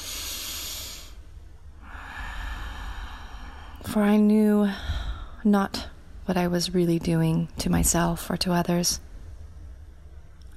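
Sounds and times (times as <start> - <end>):
deep breaths during a guided forgiveness affirmation: 0.0 - 3.9, 4.6 - 5.5
speech: 3.8 - 9.1.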